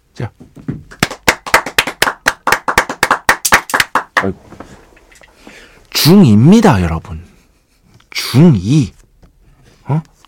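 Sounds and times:
speech: 0:00.2 - 0:00.7, 0:04.2 - 0:04.6, 0:06.0 - 0:07.2, 0:08.3 - 0:09.0, 0:09.9 - 0:10.1
hand clapping: 0:00.9 - 0:04.4.

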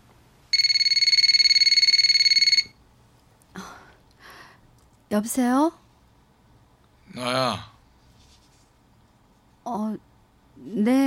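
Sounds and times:
low hum: 0:00.0 - 0:11.0
telephone ringing loudly: 0:00.5 - 0:02.8
speech: 0:05.1 - 0:05.8, 0:07.2 - 0:07.7, 0:09.7 - 0:11.0.

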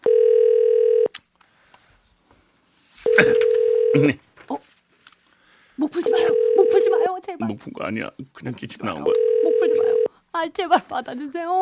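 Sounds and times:
telephone ringback tone: 0:00.0 - 0:01.1, 0:03.0 - 0:04.1, 0:06.0 - 0:07.1, 0:09.1 - 0:10.1
speech: 0:03.9 - 0:04.3, 0:07.4 - 0:11.6.

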